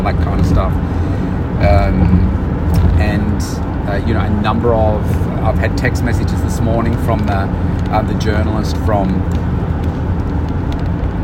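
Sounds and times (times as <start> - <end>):
car engine rumble while driving: 0.0 - 11.2
road noise from a car while driving: 0.0 - 11.2
speech: 0.1 - 1.0, 1.6 - 10.1.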